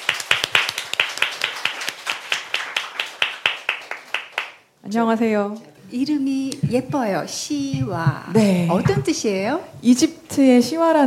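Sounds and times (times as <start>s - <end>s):
audience applause welcoming a guest: 0.0s - 4.6s
speech: 4.9s - 11.0s.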